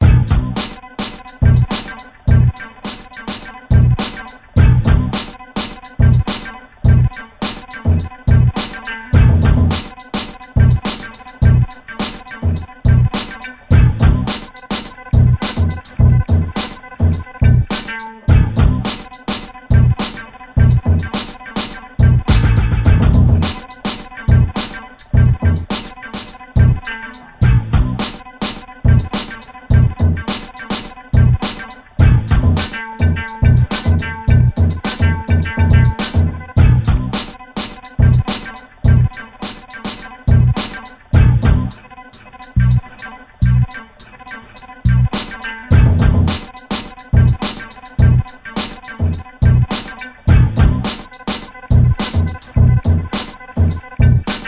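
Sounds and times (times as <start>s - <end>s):
music beat: 0.0s - 54.4s.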